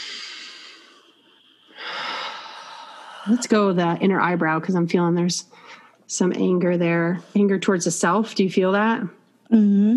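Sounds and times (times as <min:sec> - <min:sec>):
deep breath in and out during a guided breathing exercise: 0:00.0 - 0:03.4
speech: 0:03.2 - 0:09.9.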